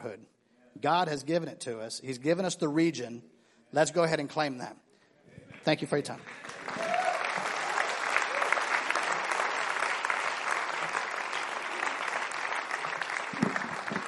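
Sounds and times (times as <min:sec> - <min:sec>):
speech: 0:00.0 - 0:04.8, 0:05.6 - 0:06.8
people clapping: 0:05.4 - 0:14.0.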